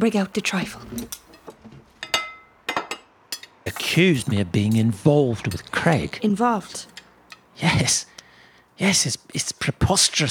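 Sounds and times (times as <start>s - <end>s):
speech: 0.0s - 1.2s, 3.9s - 6.9s, 7.6s - 8.1s, 8.8s - 10.2s
dishes being cleared away: 0.9s - 3.6s.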